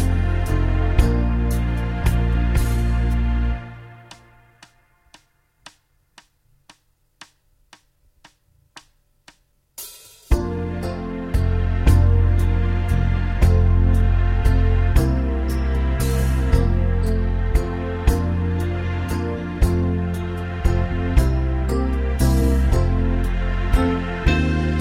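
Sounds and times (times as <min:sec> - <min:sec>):
pastorale played in brass: 0:00.0 - 0:04.8, 0:10.3 - 0:24.8.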